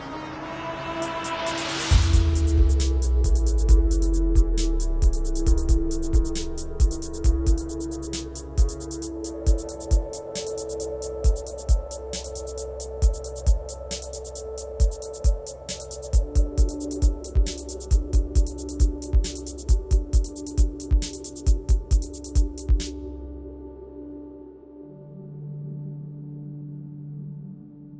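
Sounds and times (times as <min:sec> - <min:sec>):
soundscape beat: 0:01.0 - 0:23.1.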